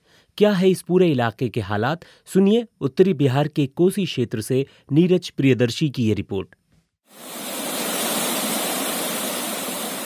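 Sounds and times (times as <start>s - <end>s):
speech: 0.4s - 7.4s
roaring floodwater waves at the Kosi river barrage: 7.1s - 10.0s.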